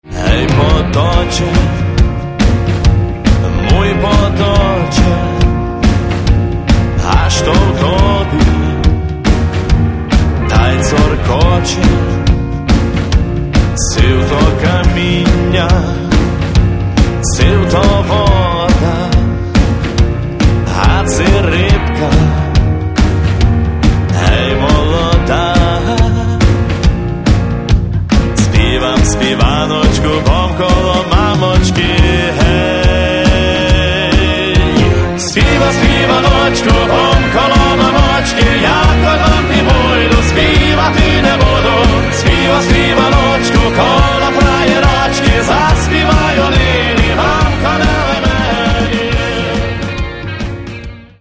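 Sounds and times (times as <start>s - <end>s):
rock music: 0.0s - 51.2s.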